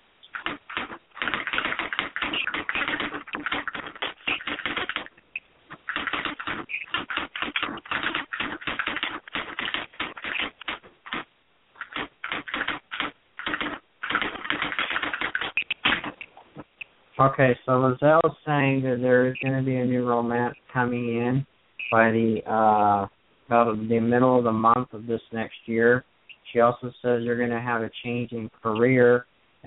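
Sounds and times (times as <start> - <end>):
rapid keyboard typing of a message: 0.2 - 16.3
speech: 17.2 - 29.6.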